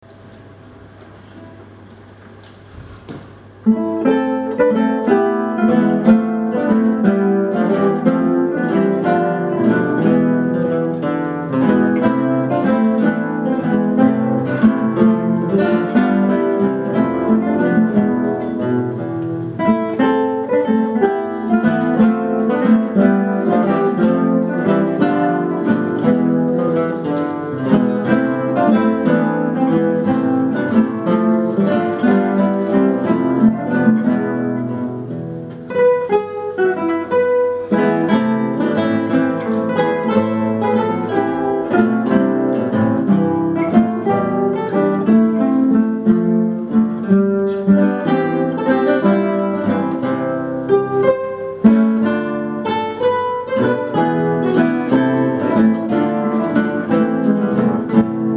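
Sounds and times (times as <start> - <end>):
guitar piece: 0.0 - 58.3.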